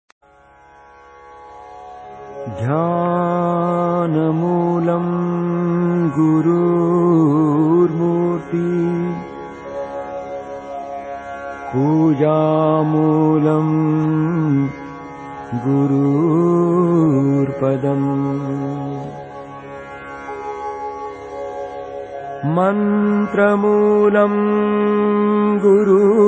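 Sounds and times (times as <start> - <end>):
mantra chanting: 2.4 - 9.3, 11.7 - 14.8, 15.5 - 19.2, 22.4 - 26.2.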